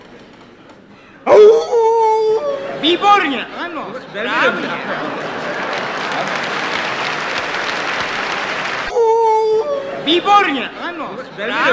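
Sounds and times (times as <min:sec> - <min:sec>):
laughter: 0:00.0 - 0:11.7
voice imitating a jackal howling: 0:01.3 - 0:03.1
speech: 0:02.8 - 0:05.4, 0:10.1 - 0:11.7.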